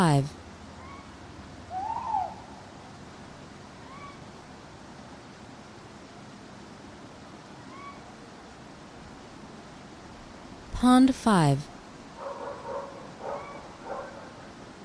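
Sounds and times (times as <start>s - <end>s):
speech: 0.0s - 0.4s, 10.8s - 11.7s
steady hiss: 0.0s - 14.8s
owl hoot: 0.8s - 1.1s, 1.7s - 2.6s, 3.8s - 4.2s, 7.7s - 8.1s, 13.2s - 13.7s.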